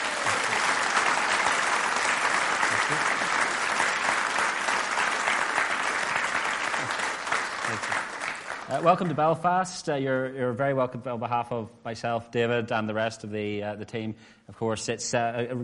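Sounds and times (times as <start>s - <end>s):
audience applause in Belfast welcoming a guest speaker: 0.0s - 9.2s
speech: 8.7s - 15.6s.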